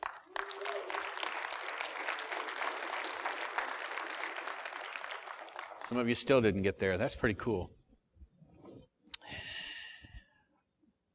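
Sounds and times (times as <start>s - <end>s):
crowd applause: 0.0s - 6.4s
speech: 5.9s - 7.8s.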